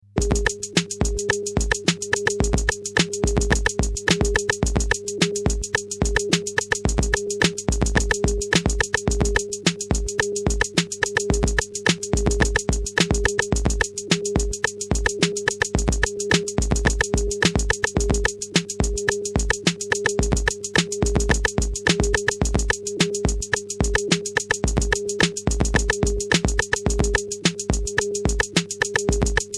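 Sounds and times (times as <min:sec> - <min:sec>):
beat sketch: 0:00.2 - 0:29.5.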